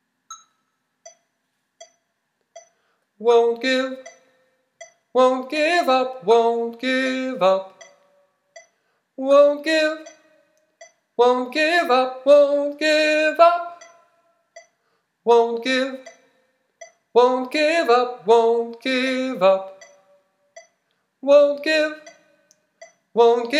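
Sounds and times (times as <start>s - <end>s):
tenor singing: 3.2s - 4.3s, 5.1s - 8.2s, 9.2s - 10.5s, 11.2s - 14.1s, 15.3s - 16.2s, 17.1s - 20.2s, 21.2s - 22.3s, 23.1s - 23.5s.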